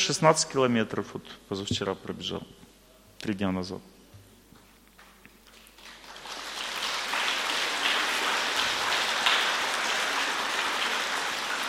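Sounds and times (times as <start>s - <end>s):
speech: 0.0s - 4.0s
audience clapping: 5.0s - 11.6s.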